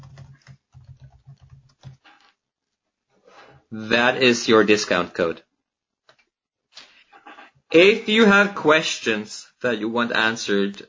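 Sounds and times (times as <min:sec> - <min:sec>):
typing a discount code on a computer keyboard: 0:00.0 - 0:02.3
speech: 0:03.7 - 0:05.5, 0:07.7 - 0:10.8.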